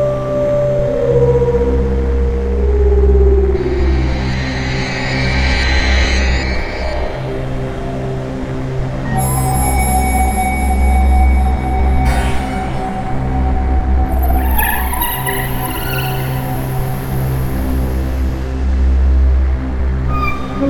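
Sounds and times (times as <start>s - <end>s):
eerie ambience: 0.1s - 20.6s.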